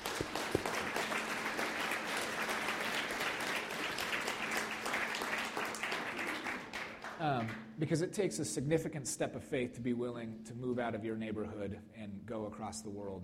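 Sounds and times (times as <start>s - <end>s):
church congregation applauding: 0.0s - 7.7s
speech: 7.3s - 13.2s.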